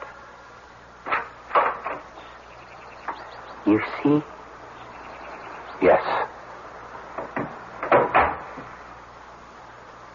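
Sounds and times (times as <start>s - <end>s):
door opening with knocks and creaks: 1.0s - 2.1s, 7.2s - 8.8s
speech: 3.6s - 4.4s.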